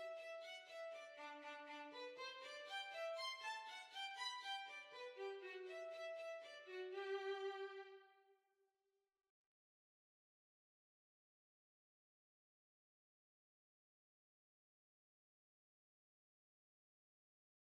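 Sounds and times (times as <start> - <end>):
violin waltz: 0.0 - 8.1.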